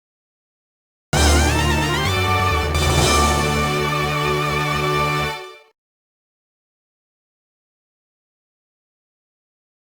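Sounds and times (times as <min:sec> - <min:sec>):
summon music: 0:01.2 - 0:05.7.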